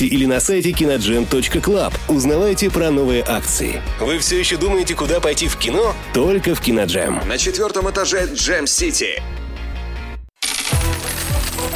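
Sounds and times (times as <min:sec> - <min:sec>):
speech: 0:00.0 - 0:09.4
coins clinking: 0:10.4 - 0:11.7.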